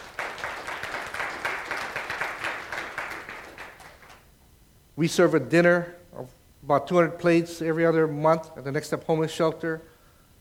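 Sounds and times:
audience clapping: 0:00.0 - 0:04.2
speech: 0:05.0 - 0:09.9.

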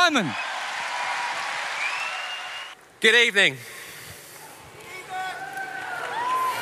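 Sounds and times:
audience applause: 0:00.0 - 0:02.8, 0:04.4 - 0:06.5
speech: 0:00.1 - 0:00.5, 0:03.0 - 0:03.8.

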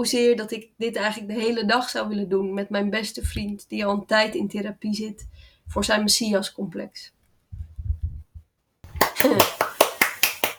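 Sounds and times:
speech: 0:00.0 - 0:07.2, 0:09.2 - 0:09.6
low thumps: 0:03.2 - 0:04.0, 0:05.2 - 0:06.1, 0:07.5 - 0:08.5
sharp bright hand claps: 0:08.9 - 0:10.5.

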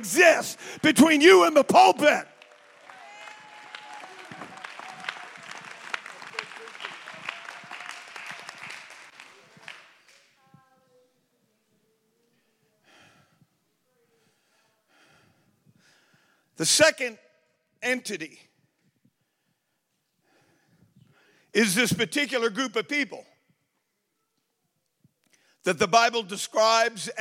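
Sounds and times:
speech: 0:00.0 - 0:02.3, 0:16.6 - 0:18.5, 0:21.5 - 0:23.3, 0:25.6 - 0:27.1
audience clapping hands: 0:00.0 - 0:10.4
murmuring voices: 0:03.2 - 0:09.8.

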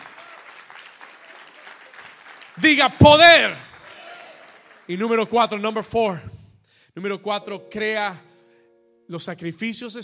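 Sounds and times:
loud applause: 0:00.0 - 0:05.0
speech: 0:02.6 - 0:03.7, 0:04.9 - 0:06.3, 0:07.0 - 0:08.3, 0:09.1 - 0:10.0.

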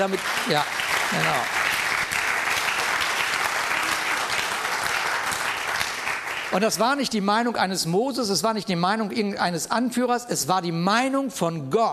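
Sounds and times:
speech: 0:00.0 - 0:01.6, 0:06.5 - 0:11.9
audience applause: 0:00.0 - 0:07.1.

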